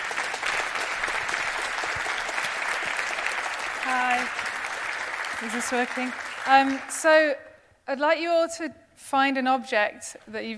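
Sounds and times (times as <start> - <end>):
audience applause: 0.0 - 7.2
speech: 5.4 - 10.5.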